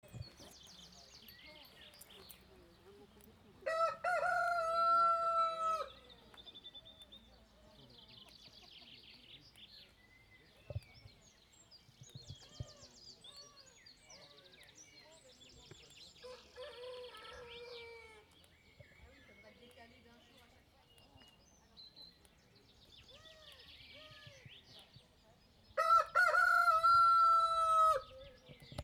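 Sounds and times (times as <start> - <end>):
rooster crowing: 3.7 - 5.9, 25.8 - 28.0.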